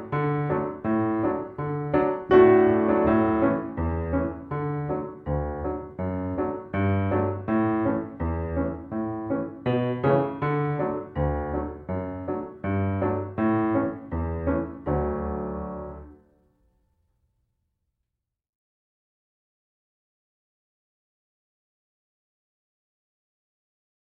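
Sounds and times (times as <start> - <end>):
piano: 0.0 - 17.0.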